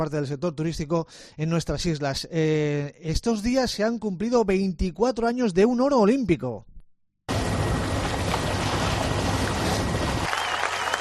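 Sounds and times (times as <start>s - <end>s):
speech: 0.0s - 6.7s
sailboat sailing on water: 7.3s - 10.9s.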